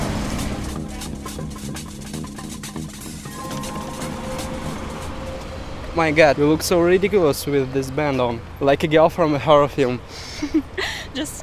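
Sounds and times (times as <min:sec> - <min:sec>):
tram passing: 0:00.0 - 0:08.7
speech: 0:06.0 - 0:11.4.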